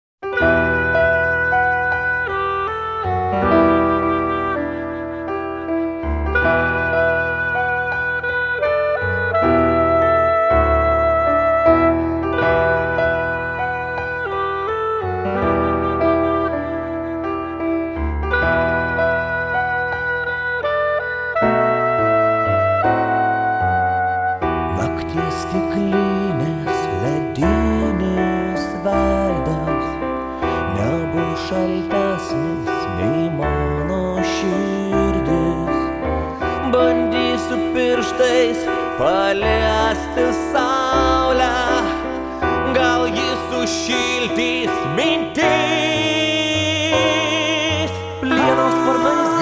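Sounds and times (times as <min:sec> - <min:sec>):
piano version: 0:00.2 - 0:49.4.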